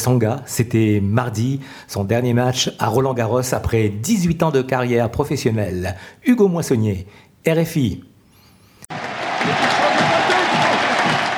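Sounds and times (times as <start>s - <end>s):
speech: 0.0s - 8.1s
crowd applauding on the Roland-Garros centre court: 8.9s - 11.3s.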